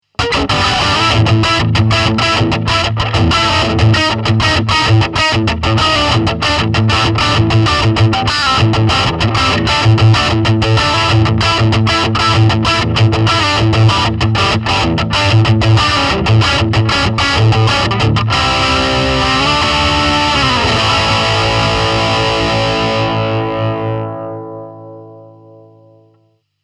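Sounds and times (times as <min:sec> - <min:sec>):
Red Channel lead guitar tone: 0:00.0 - 0:26.4.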